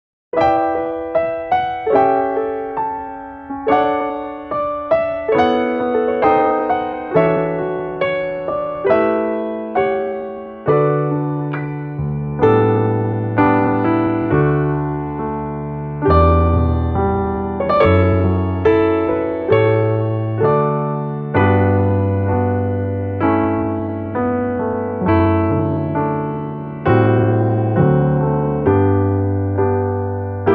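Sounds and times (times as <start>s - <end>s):
faster musical accompaniment in D: 0.4s - 30.5s.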